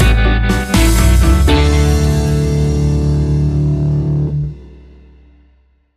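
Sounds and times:
fifties-style music stinger: 0:00.0 - 0:04.8.

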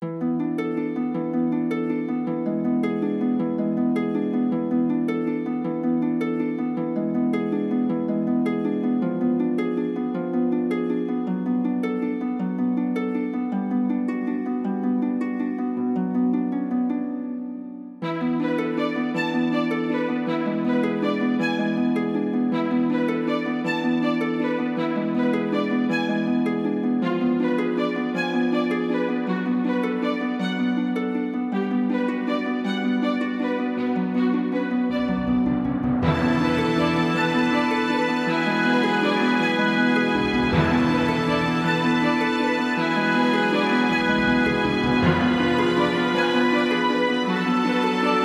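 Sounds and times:
celestial harp melody: 0:00.0 - 0:48.2.

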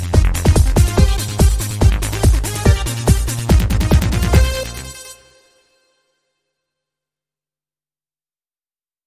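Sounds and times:
dance beat: 0:00.0 - 0:05.2.

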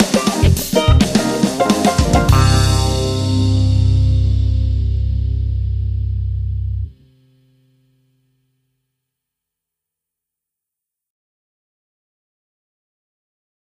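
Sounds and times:
funk stinger music: 0:00.0 - 0:07.0.

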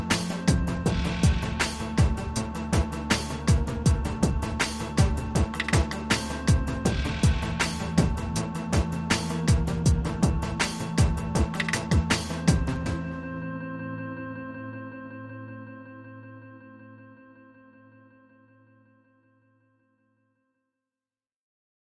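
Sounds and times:
rhythm and melody elements remix: 0:00.0 - 0:13.2.

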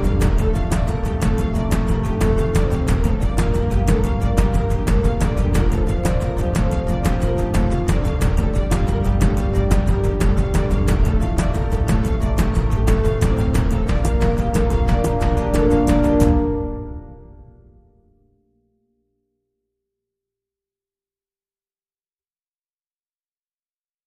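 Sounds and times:
percussion: 0:00.0 - 0:17.4.

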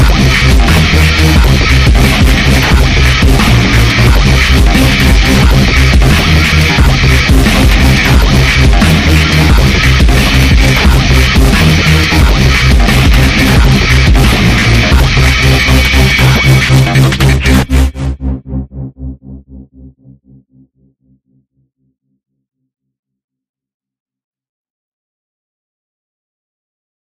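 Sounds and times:
modern digital dubstep mix: 0:00.0 - 0:19.2.

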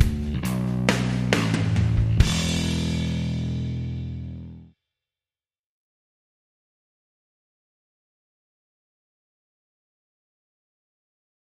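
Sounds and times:
drums: 0:00.0 - 0:04.4
bass: 0:00.0 - 0:04.8.

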